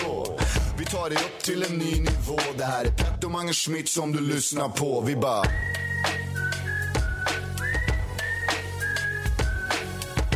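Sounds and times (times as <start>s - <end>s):
steady beat with punchy drum hits and bass: 0.0s - 10.3s
speech: 0.9s - 5.9s
bright whistled melody in a music track: 5.4s - 10.3s.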